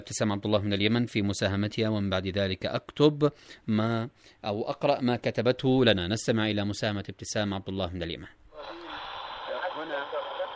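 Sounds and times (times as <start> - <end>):
speech: 0.0 - 8.8
radio jamming interference hiss on a broadcast station in Yemen: 8.6 - 10.5.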